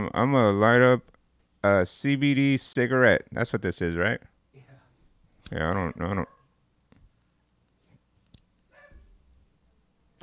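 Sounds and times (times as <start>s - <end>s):
speech: 0.0s - 4.3s, 5.5s - 6.4s
dogs barking in the background: 8.7s - 9.1s.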